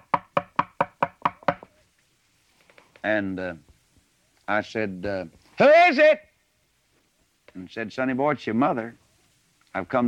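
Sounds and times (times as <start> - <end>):
knocking on a door: 0.0 - 1.7
speech: 3.0 - 3.7, 4.5 - 6.3, 7.6 - 9.0, 9.7 - 10.0.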